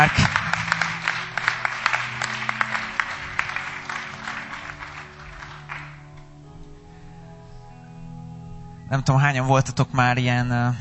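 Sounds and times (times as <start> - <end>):
speech: 0.0 - 0.5, 8.9 - 10.8
audience applause thanking a speaker after a teaching session: 0.0 - 6.4.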